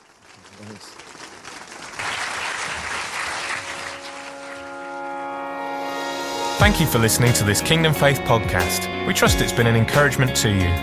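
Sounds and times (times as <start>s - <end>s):
audience applause: 0.0s - 5.5s
sustained tonal sound like music: 3.6s - 10.8s
speech: 6.6s - 10.8s.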